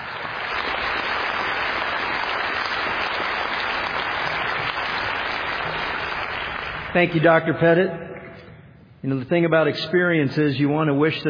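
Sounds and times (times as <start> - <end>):
morning audience applause welcoming a speaker: 0.0 - 7.2
speech: 7.0 - 8.1, 9.0 - 11.2.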